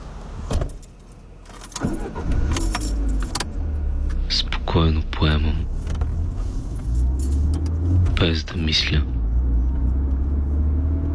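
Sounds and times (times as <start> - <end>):
car engine starting and rumbling: 0.0 - 11.1
keys jangling: 0.7 - 3.4, 6.9 - 7.7
speech: 4.7 - 5.8, 8.2 - 9.1.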